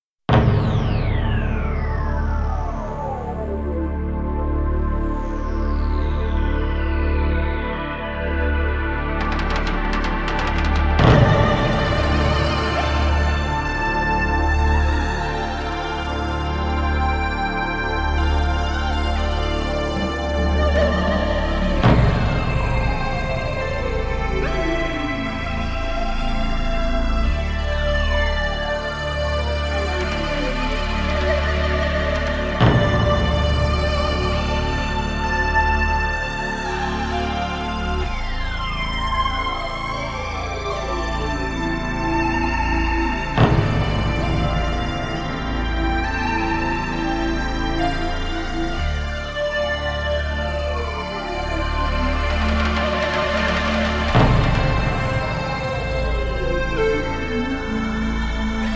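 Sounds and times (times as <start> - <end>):
instrumental music: 0.3 - 58.7.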